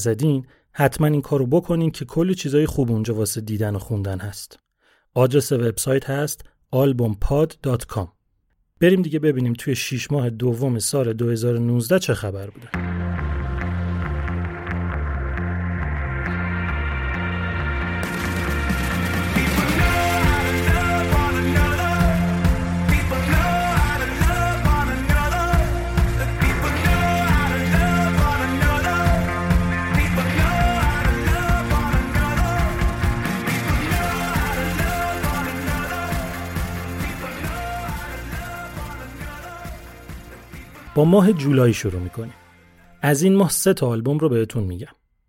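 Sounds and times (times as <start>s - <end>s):
speech: 0.0s - 8.2s, 8.8s - 13.0s, 41.0s - 42.4s, 43.0s - 45.0s
indie rock track: 12.7s - 41.1s.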